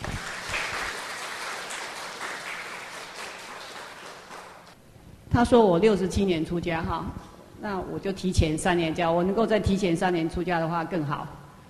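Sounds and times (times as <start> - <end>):
audience applause: 0.0 - 4.8
speech: 5.4 - 11.4.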